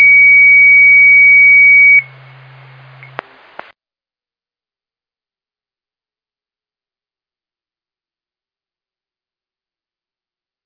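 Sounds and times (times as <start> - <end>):
siren: 0.0 - 2.3.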